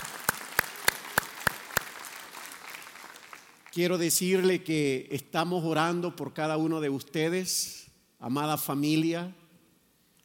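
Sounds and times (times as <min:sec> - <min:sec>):
audience clapping in unison: 0:00.0 - 0:04.0
speech: 0:03.8 - 0:09.4.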